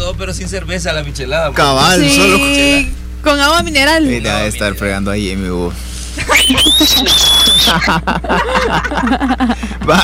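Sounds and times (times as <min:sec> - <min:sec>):
speech: 0:00.2 - 0:10.0
laughter: 0:06.2 - 0:10.0
person whistling: 0:06.3 - 0:07.7.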